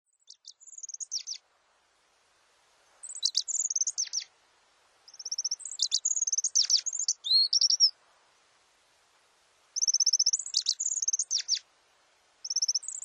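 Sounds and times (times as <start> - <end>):
Japanese accentor singing twittering phrases at Norikura, Japan: 0.1 - 1.4, 3.0 - 4.3, 5.1 - 8.0, 9.8 - 11.7, 12.4 - 13.0.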